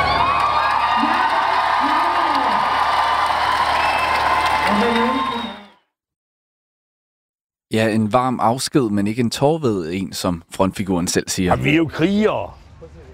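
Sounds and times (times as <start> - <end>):
large outdoor concert crowd applauding: 0.0 - 5.8
speech: 7.7 - 13.1.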